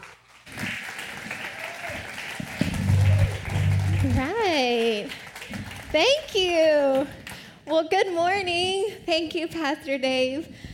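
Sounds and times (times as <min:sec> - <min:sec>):
church congregation clapping welcoming a pastor onto the stage: 0:00.0 - 0:07.5
speech: 0:05.9 - 0:10.6.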